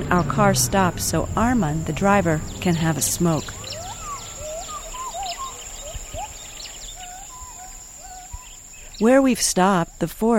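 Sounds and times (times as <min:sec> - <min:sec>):
speech: 0:00.0 - 0:03.6, 0:09.0 - 0:10.3
bird chirps: 0:00.0 - 0:10.1
steady high insect whine: 0:00.0 - 0:10.3
gibbons calling in a distant forest: 0:02.7 - 0:09.0.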